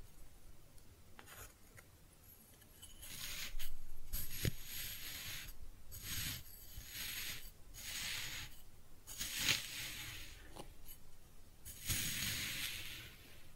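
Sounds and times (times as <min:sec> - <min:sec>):
kinetic sand cutting and scooping: 0:03.0 - 0:10.6, 0:11.7 - 0:13.5.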